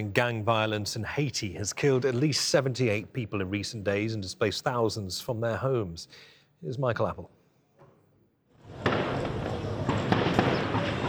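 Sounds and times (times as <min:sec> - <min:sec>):
speech: 0:00.0 - 0:07.4
outdoor noise: 0:00.0 - 0:11.0
volley of gunfire: 0:08.7 - 0:11.0.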